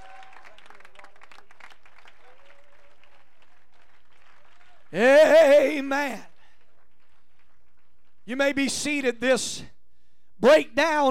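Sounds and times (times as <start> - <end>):
audience clapping hands: 0.0 - 8.7
speech: 4.9 - 6.3, 8.3 - 9.7, 10.4 - 11.0.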